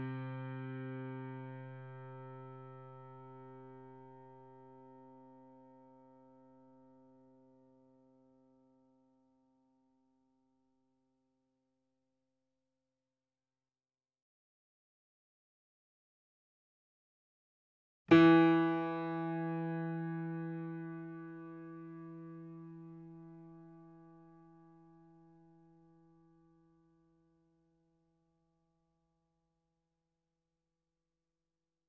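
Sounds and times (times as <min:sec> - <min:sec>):
sample piano: 0:00.0 - 0:08.0, 0:18.1 - 0:25.7.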